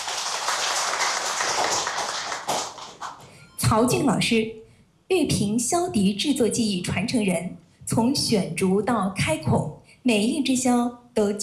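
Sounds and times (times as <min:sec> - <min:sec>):
audience applause: 0:00.0 - 0:03.2
speech: 0:03.7 - 0:11.4.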